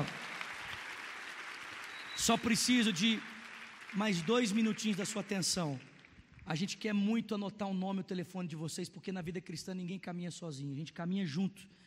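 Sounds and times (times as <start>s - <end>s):
audience applauding: 0.0s - 6.4s
speech: 2.2s - 5.9s, 6.5s - 11.8s.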